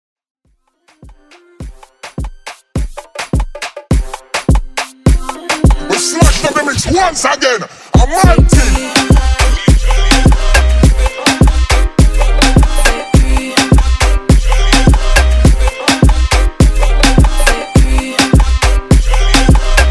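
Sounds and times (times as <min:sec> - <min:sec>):
moombahton DJ mix: 0:00.8 - 0:19.9.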